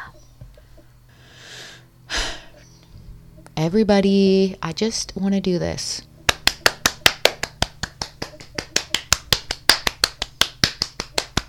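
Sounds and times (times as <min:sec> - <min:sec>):
speech: 0:03.6 - 0:06.1
one person clapping hands in a quick steady rhythm: 0:06.3 - 0:11.4.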